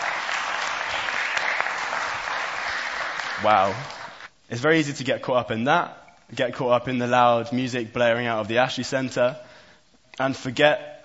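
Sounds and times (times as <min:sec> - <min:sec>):
applause: 0:00.0 - 0:04.3
speech: 0:03.4 - 0:09.5, 0:10.2 - 0:10.9.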